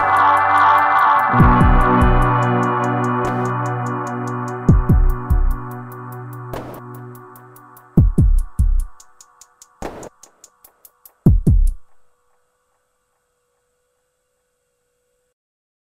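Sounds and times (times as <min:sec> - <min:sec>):
guitar: 0:00.0 - 0:09.2
drum machine with LFO and feedback modulation: 0:00.0 - 0:12.1.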